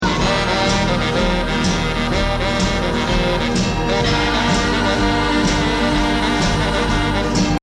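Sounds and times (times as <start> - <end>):
saxophone: 0.0 - 7.6.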